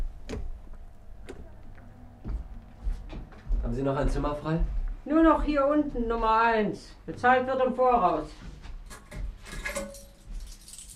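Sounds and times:
speech: 0:03.7 - 0:08.5
hotel room key jangling: 0:08.9 - 0:10.9.

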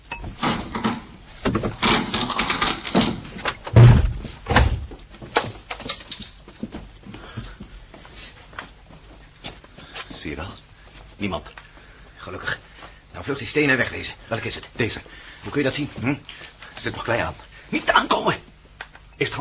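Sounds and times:
knocks and clatter as the door gives way: 0:00.3 - 0:06.9
iron bar scraping and rattling against padlocked door: 0:00.4 - 0:03.6
heavy booming thuds of door being forced: 0:03.0 - 0:05.0
speech: 0:13.3 - 0:18.4, 0:19.2 - 0:19.3.

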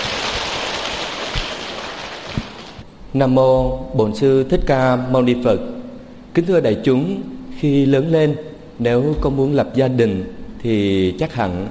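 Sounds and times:
audience applause: 0:00.0 - 0:02.8
speech: 0:03.1 - 0:05.8, 0:06.4 - 0:11.7.

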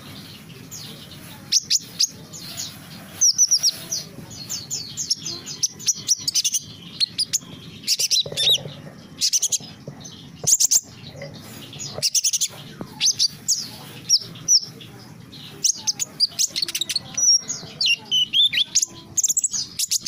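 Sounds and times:
small bird chirping with high varied tweets and whistles: 0:00.0 - 0:20.0.

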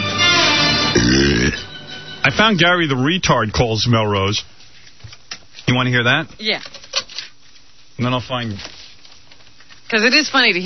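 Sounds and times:
loud drawn-out belch: 0:00.8 - 0:01.7
speech: 0:02.2 - 0:04.5, 0:05.7 - 0:06.8, 0:08.0 - 0:08.8, 0:09.9 - 0:10.6.

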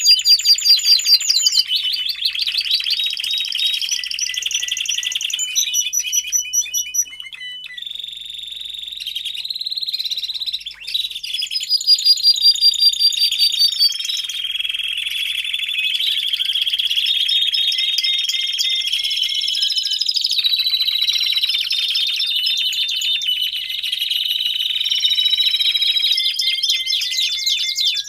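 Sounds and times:
domestic canary song: 0:00.0 - 0:28.0.

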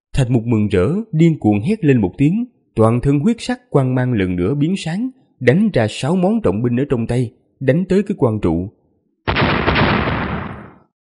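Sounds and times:
speech: 0:00.2 - 0:09.4
loud explosion: 0:09.3 - 0:10.9.

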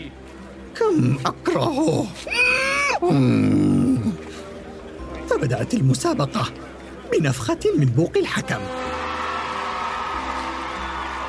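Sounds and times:
speech: 0:00.9 - 0:02.4, 0:03.0 - 0:04.2, 0:05.3 - 0:08.9
crowd at a pottery-making contest cheering and shouting encouragement: 0:08.5 - 0:11.2.

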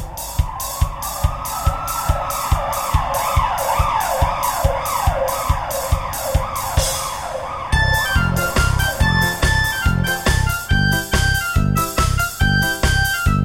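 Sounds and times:
fire truck siren: 0:00.0 - 0:13.4.

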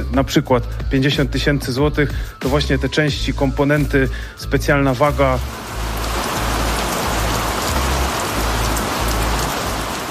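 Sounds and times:
speech: 0:00.1 - 0:05.8
steady dense rain pouring: 0:04.8 - 0:10.0
low rumbling undertone: 0:05.2 - 0:10.0.

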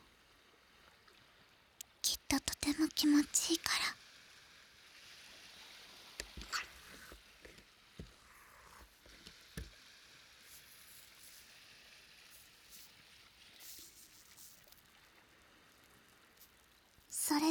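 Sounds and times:
speech: 0:02.3 - 0:04.0
foam being worked near the ear: 0:06.2 - 0:14.9.

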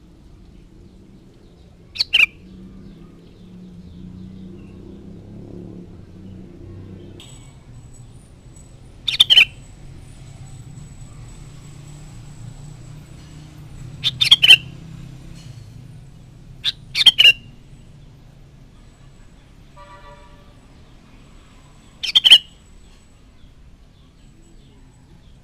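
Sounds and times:
sooty-headed bulbul chattering: 0:01.9 - 0:02.6, 0:09.0 - 0:09.7, 0:13.9 - 0:14.9, 0:16.6 - 0:17.6, 0:21.8 - 0:22.6.

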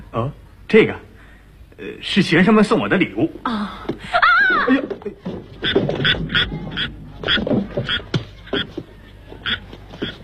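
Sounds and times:
speech: 0:00.1 - 0:01.1, 0:01.8 - 0:08.1
laughter: 0:04.0 - 0:05.3
frogs croaking: 0:05.6 - 0:08.7, 0:09.4 - 0:10.2.

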